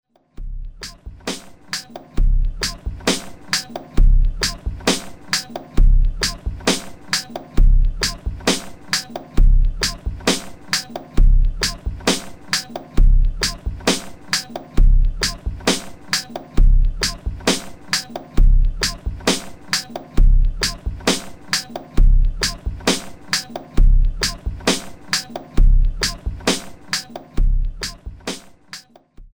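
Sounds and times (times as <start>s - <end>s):
music loop: 0.7s - 29.0s.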